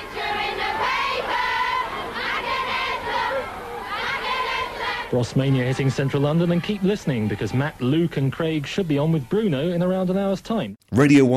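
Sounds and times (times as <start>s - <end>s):
crowd of fans screaming outside studios: 0.0s - 8.0s
speech: 5.1s - 11.3s.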